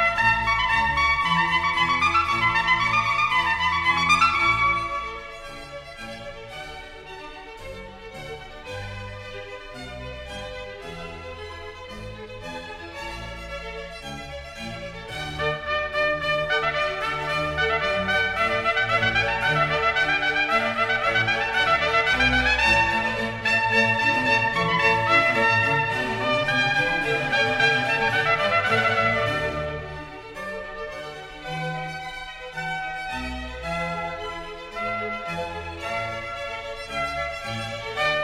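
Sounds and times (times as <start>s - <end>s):
trumpet concerto in D major allegro: 0.0s - 6.1s, 15.1s - 38.2s.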